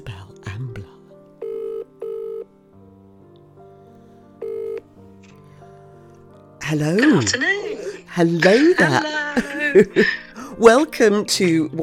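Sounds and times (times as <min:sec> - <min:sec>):
telephone ringing: 0:01.4 - 0:02.5, 0:04.4 - 0:04.9
speech: 0:06.7 - 0:11.8
laughter: 0:08.4 - 0:10.3.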